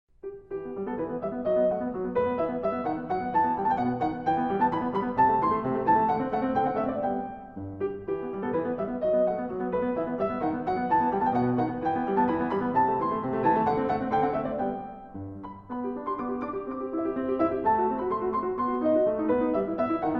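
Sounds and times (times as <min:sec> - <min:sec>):
sonata: 0:00.1 - 0:20.1.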